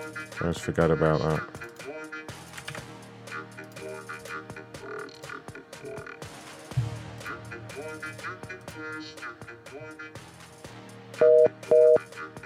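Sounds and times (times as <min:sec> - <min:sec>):
speech: 0:00.1 - 0:01.7
telephone busy signal: 0:11.2 - 0:12.0.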